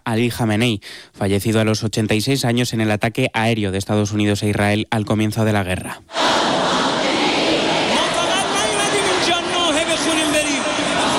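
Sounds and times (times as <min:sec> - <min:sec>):
speech: 0:00.0 - 0:06.6
thousands of mourners at the Mosalla mosque in Tehran: 0:06.1 - 0:11.1.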